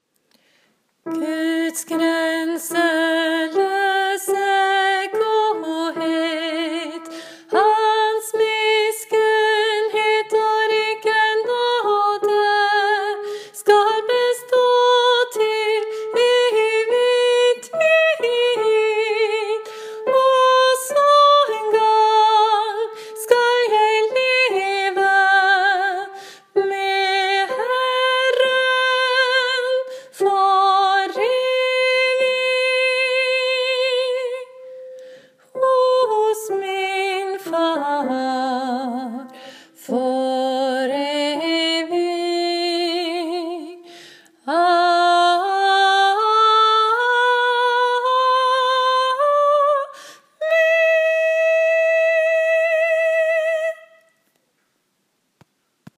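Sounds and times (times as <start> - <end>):
soprano voice: 1.0 - 54.2.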